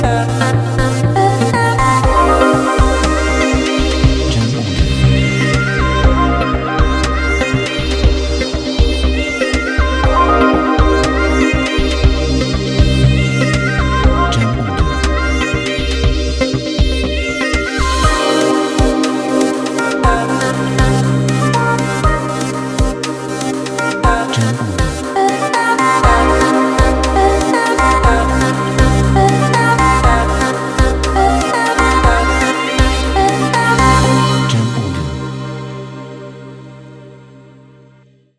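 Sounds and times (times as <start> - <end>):
urban phonk music: 0.0 - 36.4.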